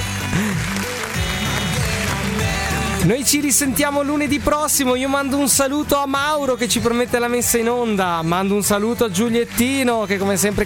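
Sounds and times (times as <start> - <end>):
audience applause: 0.0 - 4.2
speech: 3.0 - 10.6.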